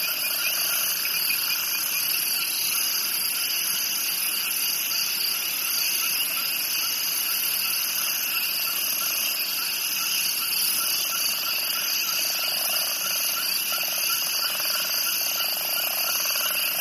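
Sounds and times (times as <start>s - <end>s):
cricket chorus buzzing shrilly: 0.0s - 16.8s.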